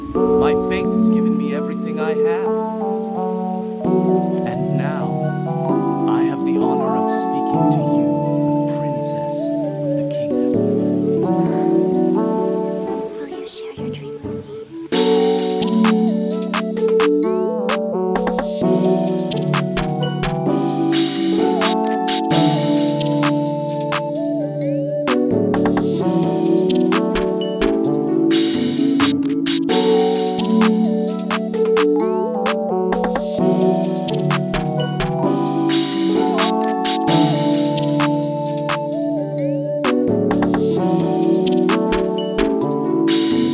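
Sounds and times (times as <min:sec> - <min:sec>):
plugg beat loop: 0:00.2 - 0:03.0, 0:03.8 - 0:43.5.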